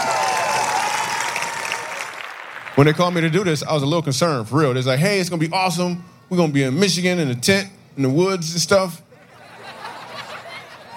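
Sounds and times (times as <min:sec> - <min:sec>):
crowd applauding: 0:00.0 - 0:03.4
speech: 0:02.8 - 0:09.0
laughter: 0:09.1 - 0:10.9.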